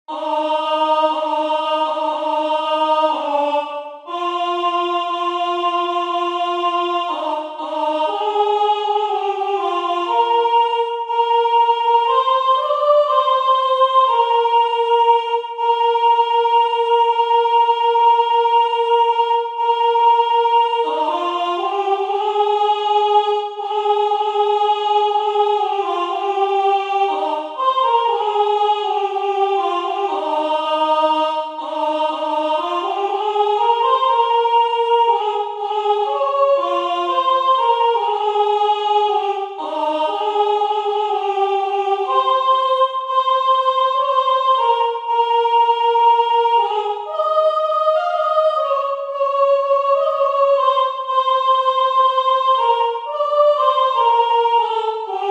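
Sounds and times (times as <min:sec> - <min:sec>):
soprano singing: 0:00.1 - 0:55.2.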